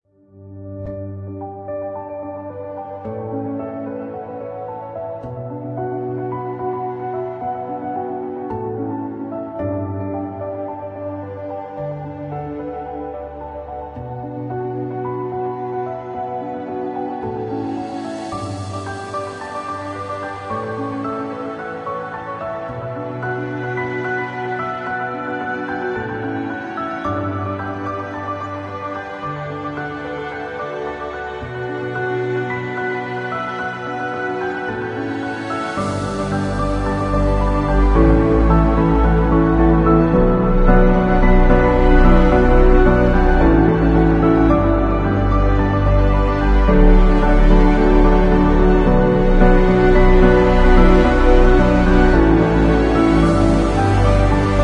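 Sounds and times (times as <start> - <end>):
inspiring cinematic music: 0.3 - 54.6.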